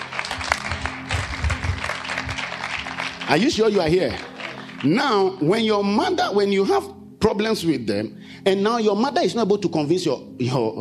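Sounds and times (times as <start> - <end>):
audience clapping hands: 0.0 - 5.6
speech: 3.3 - 10.8.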